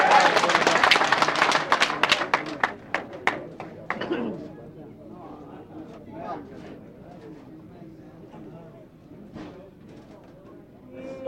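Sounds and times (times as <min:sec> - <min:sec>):
audience applause: 0:00.0 - 0:04.1.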